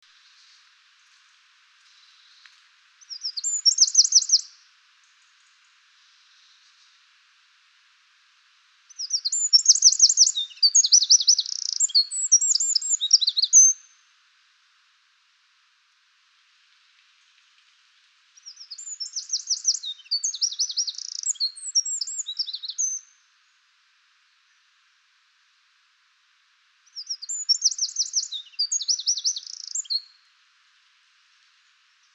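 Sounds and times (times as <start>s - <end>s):
Eurasian wren song: 1.9s - 7.0s, 8.9s - 14.0s, 18.4s - 23.3s, 26.8s - 30.3s.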